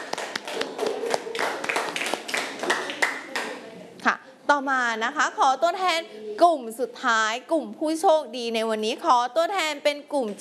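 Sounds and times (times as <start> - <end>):
hands clapping: 0.0 - 3.6
speech: 4.6 - 10.3.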